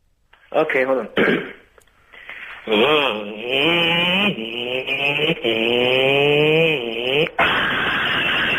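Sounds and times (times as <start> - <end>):
speech: 0.5 - 1.6, 2.6 - 6.2
voice imitating a motorbike crash: 2.7 - 8.5.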